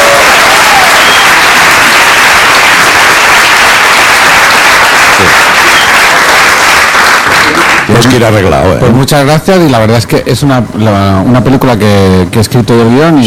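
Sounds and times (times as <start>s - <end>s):
audience applause: 0.0s - 8.2s
speech: 8.0s - 13.2s.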